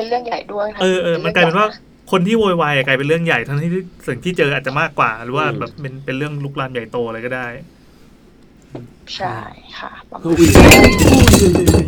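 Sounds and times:
speech: 0.0s - 7.8s, 8.7s - 11.8s
drinking glass tipping over and clattering down: 10.4s - 11.8s.

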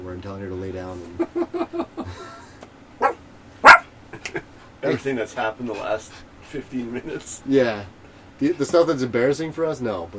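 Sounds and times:
speech: 0.1s - 2.2s, 4.1s - 10.1s
dog barking: 3.0s - 3.9s.

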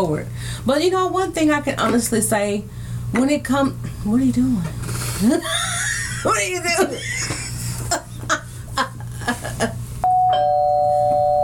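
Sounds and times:
speech: 0.0s - 7.4s
laughter: 5.3s - 9.8s
doorbell ringing: 10.0s - 11.4s.

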